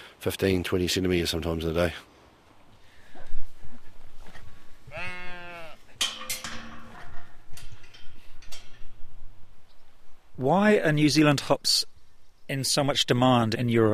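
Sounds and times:
speech: 0:00.2 - 0:02.1, 0:10.4 - 0:11.9, 0:12.5 - 0:13.9
rustling: 0:02.4 - 0:10.2
sheep bleating: 0:04.9 - 0:05.9.

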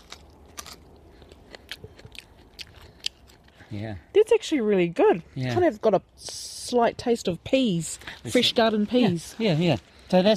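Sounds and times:
crisp bites into fresh bush asparagus: 0:00.0 - 0:03.6
chewing bush asparagus: 0:00.0 - 0:03.9
speech: 0:03.7 - 0:10.3.

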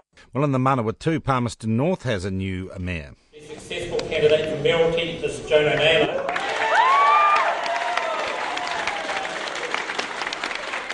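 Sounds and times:
speech: 0:00.2 - 0:06.2
crowd cheering and applauding: 0:05.5 - 0:10.9
whoops and shouts: 0:06.3 - 0:09.7.

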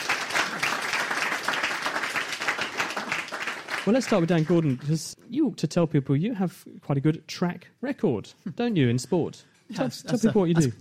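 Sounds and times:
audience clapping: 0:00.0 - 0:05.2
speech: 0:03.9 - 0:10.7.

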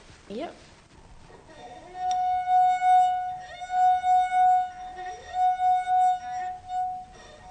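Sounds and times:
musical note played on water glass: 0:01.6 - 0:07.4.

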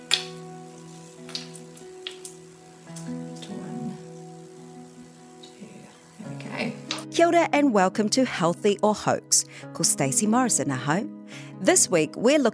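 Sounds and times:
steady low electrical hum: 0:00.0 - 0:06.9
water poured into an essential oil diffuser: 0:00.0 - 0:07.0
speech: 0:07.2 - 0:12.5.

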